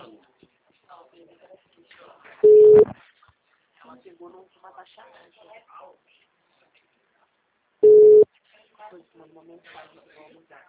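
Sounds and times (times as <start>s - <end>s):
telephone ringback tone of an unanswered call: 2.4s - 2.9s, 7.8s - 8.2s
speech: 4.2s - 6.2s, 8.8s - 10.6s.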